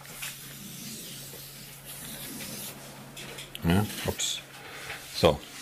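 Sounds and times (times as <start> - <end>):
pen strokes drawing a diagram on a board: 0.2 - 2.8
speech: 3.6 - 4.4, 5.2 - 5.5.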